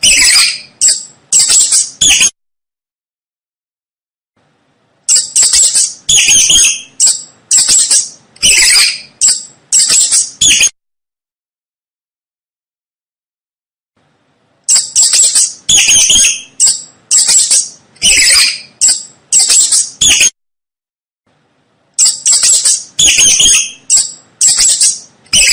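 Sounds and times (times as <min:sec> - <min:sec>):
mouse squeaking: 0:00.0 - 0:02.4, 0:05.1 - 0:10.8, 0:14.6 - 0:20.4, 0:22.0 - 0:25.5.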